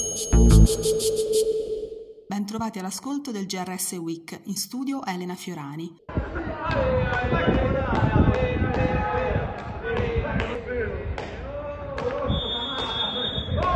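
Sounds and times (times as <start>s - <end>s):
speech: 0.7s - 1.7s, 2.3s - 10.1s
football match crowd roar with many voices: 6.1s - 13.7s
referee's whistle blowing: 12.2s - 13.7s.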